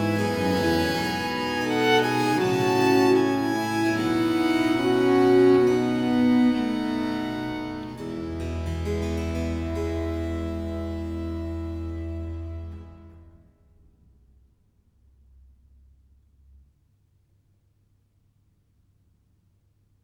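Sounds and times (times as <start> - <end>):
English viol consort music: 0.0 - 13.4.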